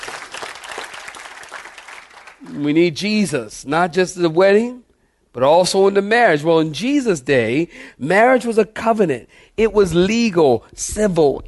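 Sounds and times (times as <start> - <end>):
audience clapping hands: 0.0 - 2.6
speech: 2.4 - 11.4.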